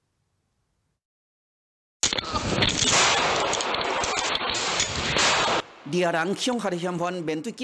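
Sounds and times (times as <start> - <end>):
exchange of gunfire, pistol shots: 2.7 - 5.7
speech: 5.9 - 7.6.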